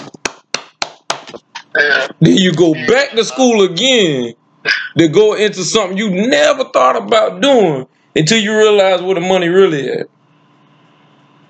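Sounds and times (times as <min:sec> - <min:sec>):
hand claps: 0:00.0 - 0:02.6
speech: 0:01.8 - 0:10.2.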